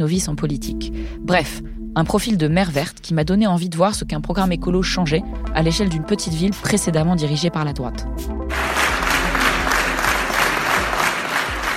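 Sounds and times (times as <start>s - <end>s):
speech: 0.0s - 8.8s
crowd applauding at an election victory: 8.5s - 11.7s.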